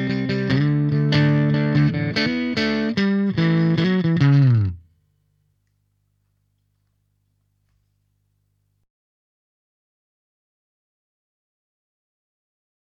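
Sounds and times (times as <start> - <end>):
clean guitar tone through a triode amplifier: 0.0 - 4.9.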